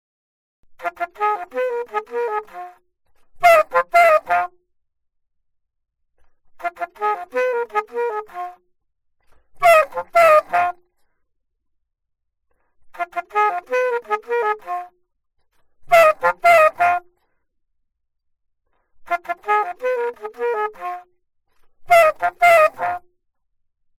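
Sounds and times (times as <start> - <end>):
alto saxophone: 0.8 - 2.8, 3.4 - 4.6, 6.6 - 8.6, 9.4 - 11.0, 12.9 - 15.0, 15.8 - 17.2, 19.0 - 21.1, 21.8 - 23.1.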